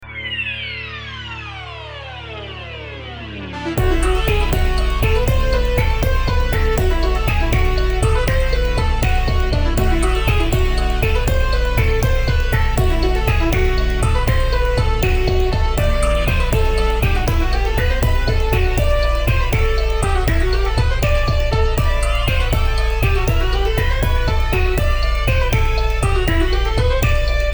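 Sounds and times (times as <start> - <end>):
bourree dance music: 3.8 - 27.5.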